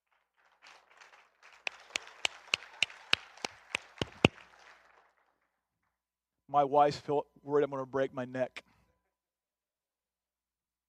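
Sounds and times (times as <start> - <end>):
group clapping: 0.0 - 5.9
speech: 6.5 - 8.6.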